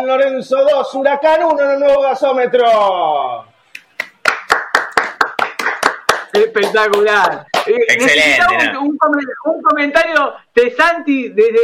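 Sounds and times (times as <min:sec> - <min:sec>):
speech: 0:00.0 - 0:03.5, 0:06.4 - 0:11.6
stadium crowd clapping in unison: 0:03.8 - 0:07.8.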